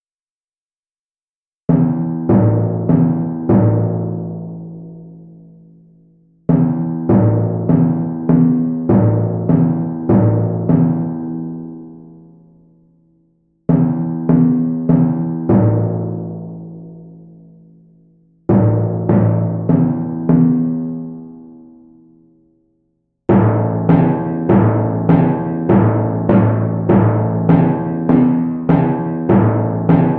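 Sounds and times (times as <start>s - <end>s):
timpani: 1.7s - 5.4s, 6.5s - 12.2s, 13.7s - 17.5s, 18.5s - 21.5s, 23.3s - 30.1s.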